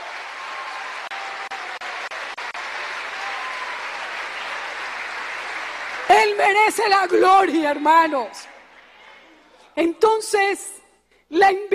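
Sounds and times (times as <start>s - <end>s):
audience applause: 0.0s - 7.5s
speech: 6.4s - 8.5s, 9.8s - 11.7s.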